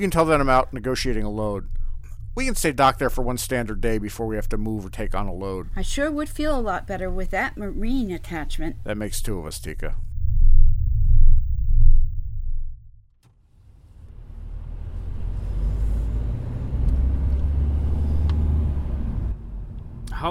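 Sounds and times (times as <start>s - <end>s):
speech: 0.0s - 1.8s, 2.4s - 10.0s
car engine rumble: 0.0s - 8.9s, 9.8s - 20.2s
traffic noise: 13.5s - 20.2s
road hiss: 13.9s - 18.6s.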